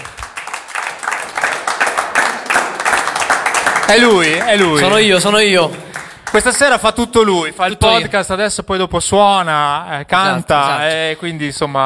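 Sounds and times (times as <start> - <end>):
audience applause: 0.0 - 6.8
speech: 3.9 - 11.8.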